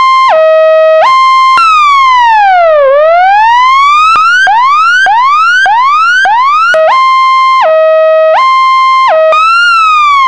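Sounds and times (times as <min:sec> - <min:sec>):
piercing emergency siren: 0:00.0 - 0:10.2.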